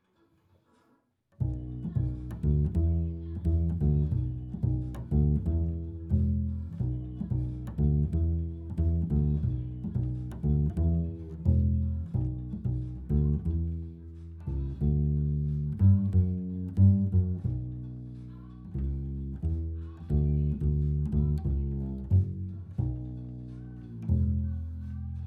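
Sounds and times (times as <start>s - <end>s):
bass recorded through a microphone: 1.4s - 25.2s.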